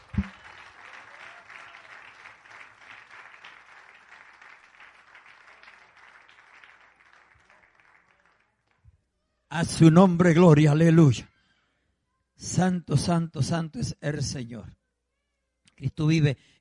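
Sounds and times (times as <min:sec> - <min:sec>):
audience applauding: 0:00.0 - 0:08.8
speech: 0:09.6 - 0:11.3, 0:12.6 - 0:14.8, 0:15.8 - 0:16.5.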